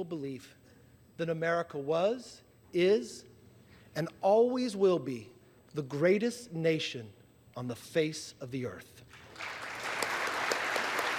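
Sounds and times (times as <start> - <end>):
speech: 0.0 - 3.3, 4.0 - 9.6
applause in congressional chamber: 9.1 - 11.1.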